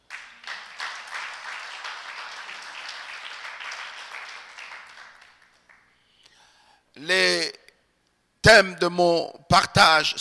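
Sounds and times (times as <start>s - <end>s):
audience applause: 0.1s - 5.8s
speech: 7.0s - 7.6s, 8.5s - 10.1s.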